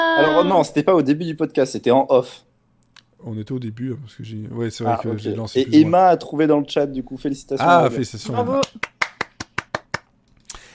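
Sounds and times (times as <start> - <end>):
speech: 0.3 - 2.5, 3.2 - 8.9
single person clapping: 8.6 - 10.1.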